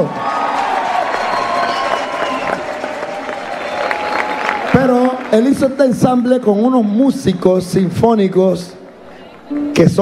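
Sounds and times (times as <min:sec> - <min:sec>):
audience applause: 0:00.0 - 0:05.7
speech: 0:05.3 - 0:08.8, 0:09.5 - 0:09.9.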